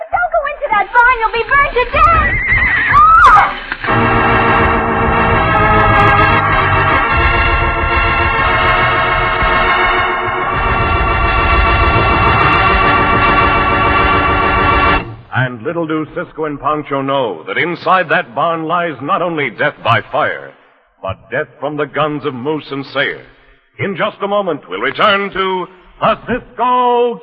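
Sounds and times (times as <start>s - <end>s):
sustained tonal swell: 0.7s - 15.3s
speech: 0.8s - 3.1s, 15.4s - 27.2s
horses neighing in a burning barn: 1.8s - 3.8s.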